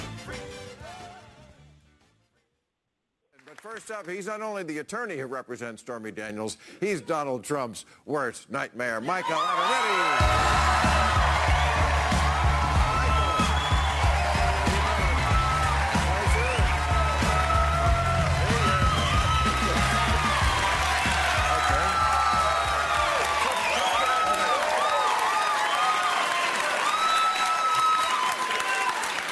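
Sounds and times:
speech: 0:03.7 - 0:11.1
standing ovation applause: 0:09.3 - 0:29.2.

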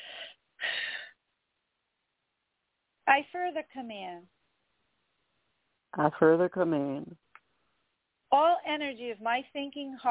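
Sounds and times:
person breathing: 0:00.0 - 0:01.1
speech: 0:03.1 - 0:04.4, 0:05.9 - 0:07.3, 0:08.4 - 0:10.0.

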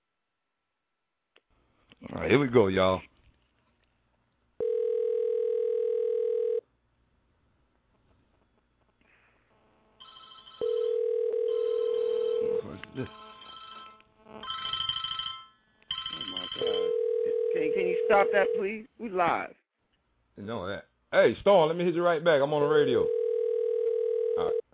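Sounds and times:
speech: 0:02.1 - 0:03.1, 0:18.5 - 0:19.6, 0:20.4 - 0:23.2
telephone ringback tone while calling: 0:04.6 - 0:06.6, 0:10.0 - 0:18.7, 0:23.0 - 0:24.6.

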